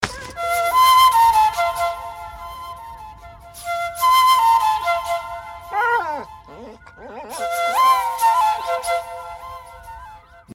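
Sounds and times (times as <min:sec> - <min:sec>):
flute ringtone: 0:00.2 - 0:10.5.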